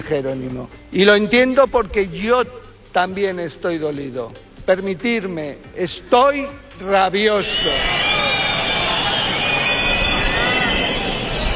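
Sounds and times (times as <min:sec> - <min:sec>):
speech: 0:00.0 - 0:08.0
audience booing: 0:07.6 - 0:11.5.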